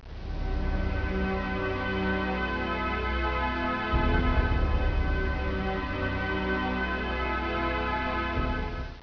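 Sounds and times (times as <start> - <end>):
battle music: 0.0 - 9.0.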